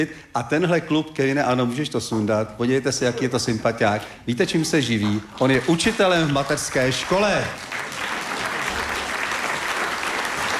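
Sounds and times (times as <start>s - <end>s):
speech: 0.0s - 7.7s
audience applause in a hall: 5.3s - 10.5s.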